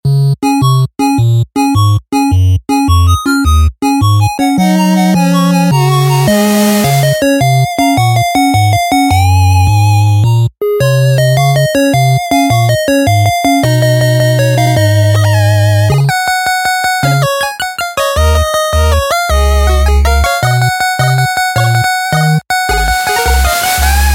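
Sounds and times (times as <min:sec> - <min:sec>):
8-bit music: 0:00.0 - 0:24.1.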